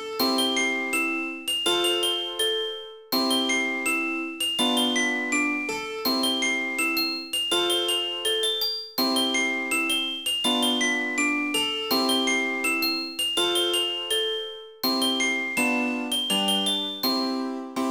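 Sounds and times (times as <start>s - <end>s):
music box: 0.2s - 17.7s.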